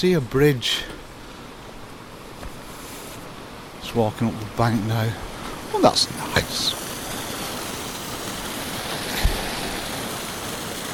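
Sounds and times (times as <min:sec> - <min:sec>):
speech: 0:00.0 - 0:00.9, 0:03.9 - 0:06.8
water running over bare rock and tumbling over small waterfall into pool: 0:00.0 - 0:10.9.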